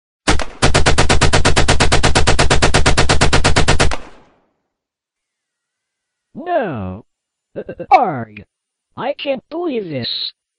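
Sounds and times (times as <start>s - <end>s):
rapid automatic gunfire aimed at the speakers: 0.3s - 4.2s
speech: 6.4s - 7.0s, 7.6s - 10.4s.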